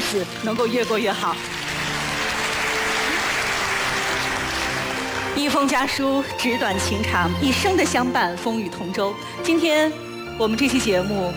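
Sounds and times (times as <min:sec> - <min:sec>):
applause: 0:00.0 - 0:06.0
speech: 0:00.1 - 0:01.6, 0:05.4 - 0:11.3.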